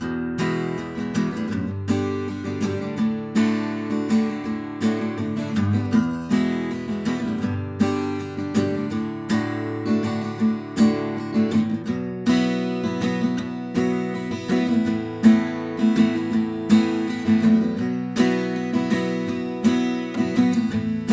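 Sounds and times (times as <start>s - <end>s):
acoustic guitar recorded with KM84 and U87 microphones: 0.0s - 21.1s.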